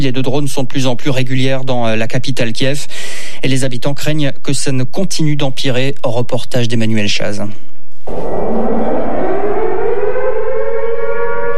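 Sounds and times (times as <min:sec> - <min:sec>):
speech: 0:00.0 - 0:09.6
air raid siren in Kiev: 0:08.0 - 0:11.5.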